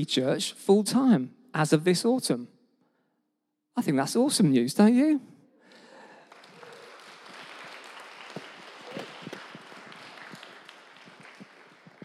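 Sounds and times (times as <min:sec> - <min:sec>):
speech: 0:00.0 - 0:02.6, 0:03.8 - 0:05.3
audience applause: 0:05.7 - 0:12.0
sharp individual claps: 0:05.7 - 0:12.0.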